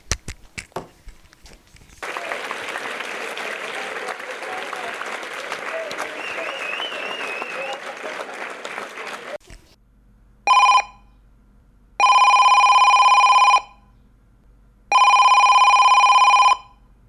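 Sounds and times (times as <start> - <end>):
noisy crowd-like sound: 2.0 - 9.4
telephone ringing with electronic trills for an incoming call: 10.5 - 11.0, 12.0 - 13.8, 14.9 - 16.8.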